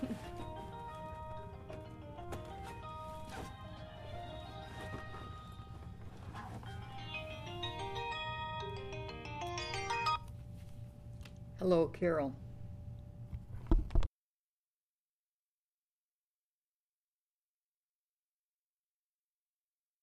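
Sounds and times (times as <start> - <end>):
steady low hum: 0.0 - 14.0
phone ringtone electronic melody: 0.4 - 6.0, 6.7 - 10.3
speech: 11.6 - 12.4.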